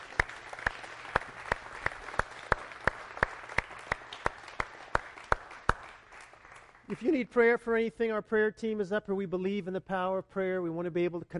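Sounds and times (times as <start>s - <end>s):
audience clapping hands: 0.0s - 7.5s
speech: 6.9s - 11.3s.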